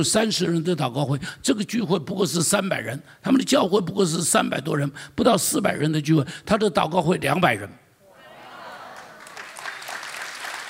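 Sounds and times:
speech: 0.0s - 7.8s
audience applause: 8.9s - 10.6s.

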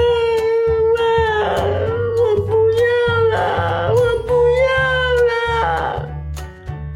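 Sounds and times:
voice imitating a girl sobbing hard: 0.0s - 6.2s.

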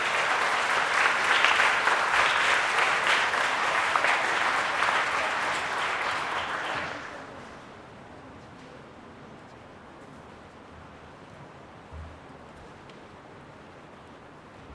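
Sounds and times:
warm audience applause: 0.0s - 7.5s.

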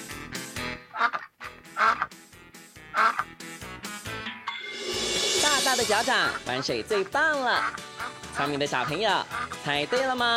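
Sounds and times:
nasal duck quacking: 0.0s - 2.1s, 2.9s - 3.3s, 7.5s - 9.6s
steady music: 0.0s - 10.3s
speech: 5.9s - 7.8s, 8.4s - 10.3s.

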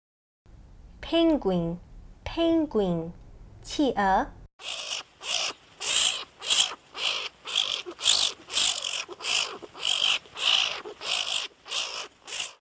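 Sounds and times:
speech: 1.1s - 4.8s
skunk raspy hissing squeaks: 4.6s - 12.5s.

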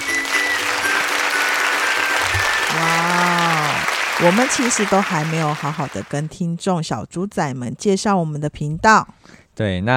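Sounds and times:
hand clapping: 0.0s - 6.3s
speech: 4.2s - 9.9s.

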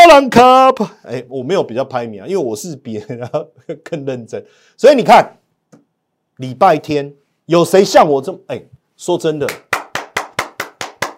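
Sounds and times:
speech: 0.1s - 5.4s, 6.4s - 9.7s
hands clapping: 9.4s - 11.1s.

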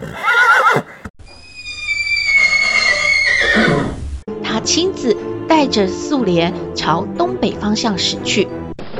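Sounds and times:
horse neighing as a horse-drawn carriage sets off: 0.0s - 4.0s
speech: 4.7s - 8.6s.

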